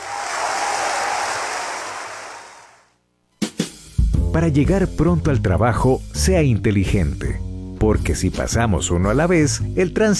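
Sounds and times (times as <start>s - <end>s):
audience applause welcoming youth orchestra: 0.0s - 2.8s
speech: 4.4s - 10.1s.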